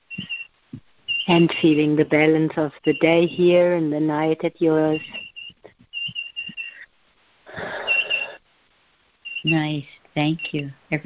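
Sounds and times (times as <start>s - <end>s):
birds chirping: 0.0s - 0.5s, 1.1s - 6.9s, 7.6s - 8.4s, 9.3s - 10.7s
speech: 1.3s - 5.2s, 9.4s - 11.0s.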